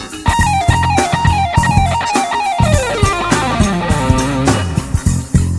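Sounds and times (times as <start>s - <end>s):
musical lick: 0.3s - 5.5s.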